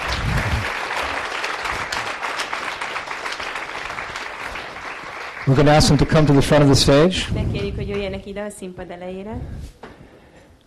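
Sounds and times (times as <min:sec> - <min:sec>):
audience applause: 0:00.0 - 0:07.0
speech: 0:05.5 - 0:09.8.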